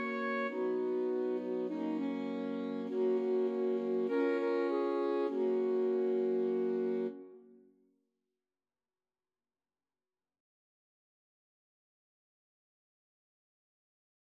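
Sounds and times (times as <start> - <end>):
alto saxophone quartet: 0.0 - 7.6.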